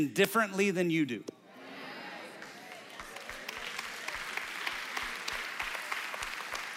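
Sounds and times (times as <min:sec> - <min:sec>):
speech: 0:00.0 - 0:01.4
audience clapping: 0:02.2 - 0:06.7.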